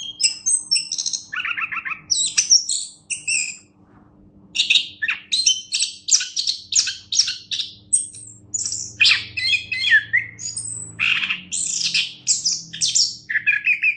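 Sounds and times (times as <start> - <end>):
Orange-headed thrush singing rich whistled and buzzy song: 0.0 - 3.7, 4.6 - 13.9.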